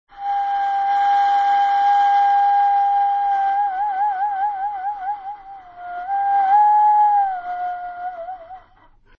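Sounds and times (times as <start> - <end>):
koauau flute: 0.1 - 9.1.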